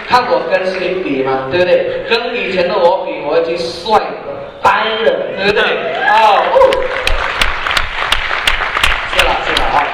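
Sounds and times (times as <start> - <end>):
speech: 0.1 - 4.0, 4.6 - 7.0
sparse thin audience applause during a talk: 6.0 - 9.9.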